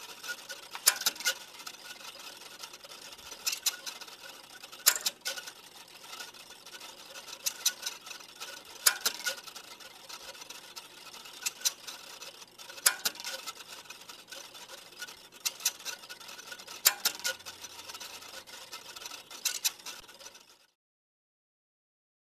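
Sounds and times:
electrocardiogram printing on paper: 0:00.0 - 0:20.6.

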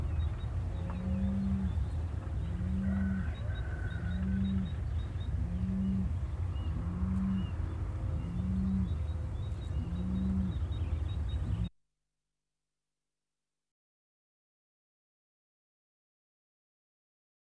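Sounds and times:
nature ambience with nearby farm: 0:00.0 - 0:11.8.

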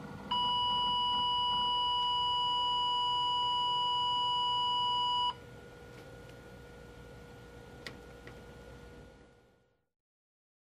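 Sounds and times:
fax machine tones: 0:00.3 - 0:05.4.

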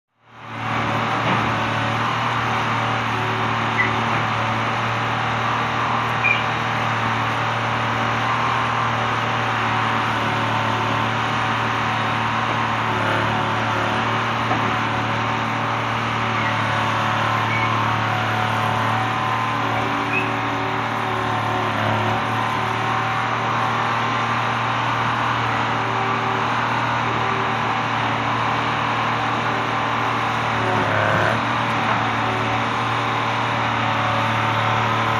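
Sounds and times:
construction noise: 0:00.3 - 0:35.1.

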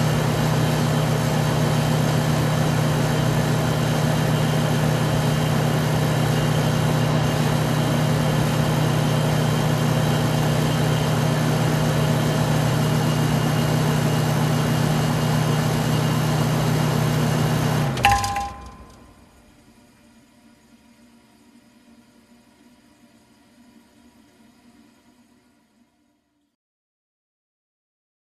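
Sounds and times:
broken air conditioner running: 0:00.0 - 0:19.6.

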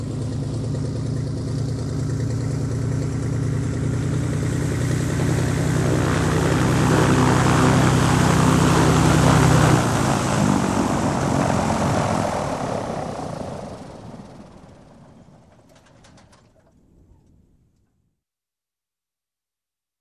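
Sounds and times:
propeller aircraft parking with engine shutdown: 0:00.0 - 0:17.4.

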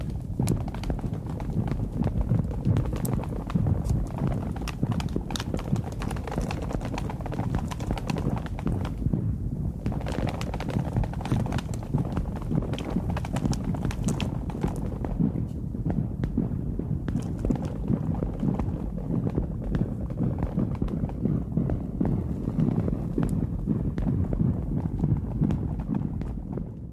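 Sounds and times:
rain in a storm: 0:00.0 - 0:09.2, 0:10.0 - 0:15.0
wind in a storm: 0:00.0 - 0:26.9.

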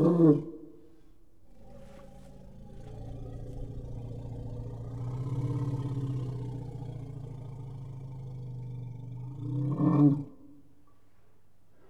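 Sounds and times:
elephant growling and roaring: 0:01.5 - 0:10.3.

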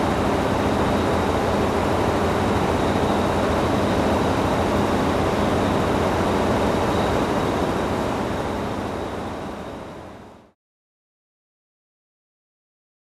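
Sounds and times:
heavy machine engine noise: 0:00.0 - 0:10.4.

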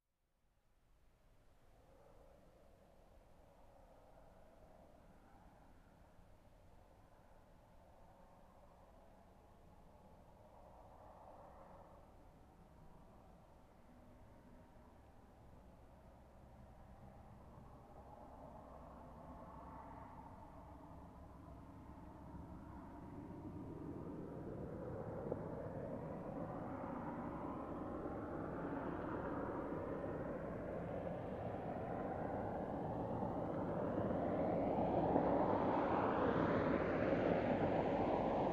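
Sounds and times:
car approaching and parking: 0:13.6 - 0:38.5.

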